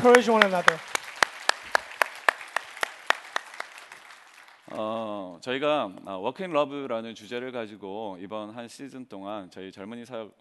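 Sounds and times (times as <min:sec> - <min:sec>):
speech: 0:00.0 - 0:00.9, 0:04.7 - 0:10.3
rhythmic crisp claps: 0:00.0 - 0:05.0.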